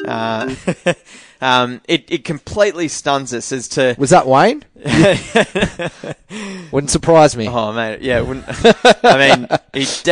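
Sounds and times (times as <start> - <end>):
mobile phone ringing: 0.0 - 0.9
speech: 0.0 - 10.1
laughter: 0.4 - 1.1, 4.8 - 6.3, 8.3 - 10.1.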